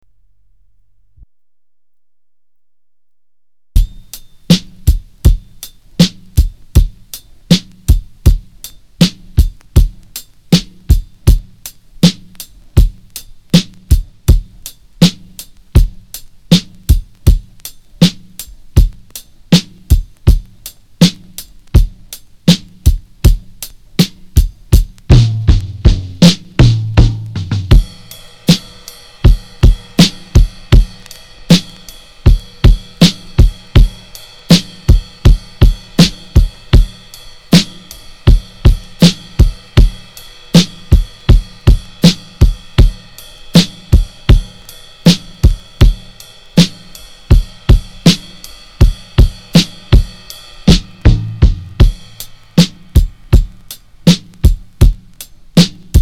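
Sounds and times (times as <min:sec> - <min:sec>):
basic drum beat: 0:03.8 - 0:56.0.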